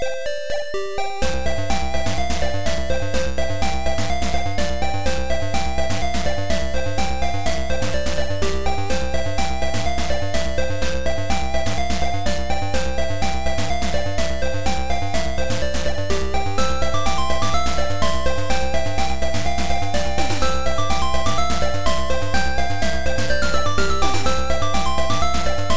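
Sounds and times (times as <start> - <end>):
game music: 0.2 - 25.7.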